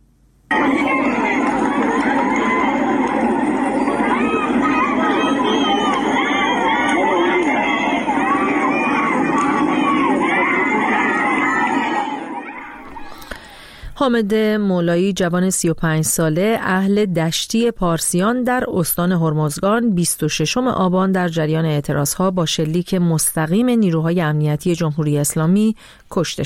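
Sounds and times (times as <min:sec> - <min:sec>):
street crowd chanting anti-government slogans: 0:00.5 - 0:13.2
speech: 0:14.0 - 0:26.4.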